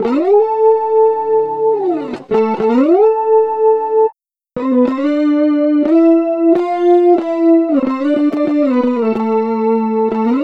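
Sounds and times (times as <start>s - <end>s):
FX guitar: 0.0s - 10.4s.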